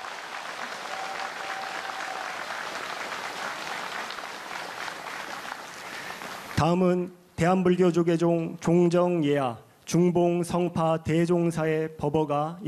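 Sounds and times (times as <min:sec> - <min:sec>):
audience applause: 0:00.0 - 0:06.6
speech: 0:06.6 - 0:12.6.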